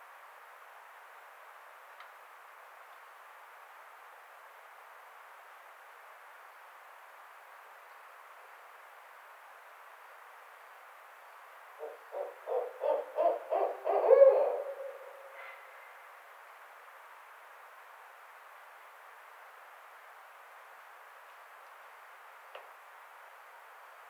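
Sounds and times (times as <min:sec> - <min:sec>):
Barred Owl calling: 0:11.8 - 0:15.9.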